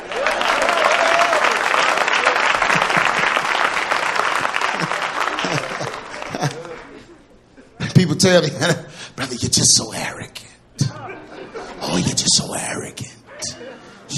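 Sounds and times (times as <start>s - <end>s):
audience hand claps: 0.0s - 7.0s
laughter: 0.4s - 8.0s, 10.8s - 12.3s, 13.3s - 14.1s
speech: 8.2s - 10.5s, 11.9s - 14.1s.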